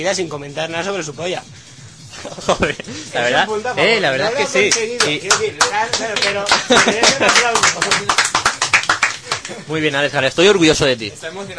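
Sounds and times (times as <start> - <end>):
speech: 0.0 - 8.3, 9.5 - 11.5
laughter: 2.1 - 3.2, 5.7 - 9.8
hand clapping: 4.6 - 9.6.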